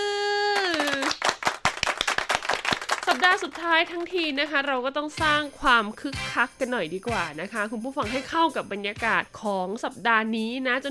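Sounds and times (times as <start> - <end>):
hand clapping: 0.6 - 4.2
speech: 3.1 - 10.8.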